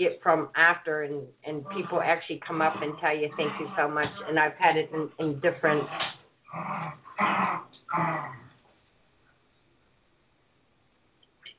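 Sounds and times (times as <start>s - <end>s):
speech: 0.0s - 8.4s
dogs growling while playing: 1.6s - 4.8s, 5.6s - 8.6s.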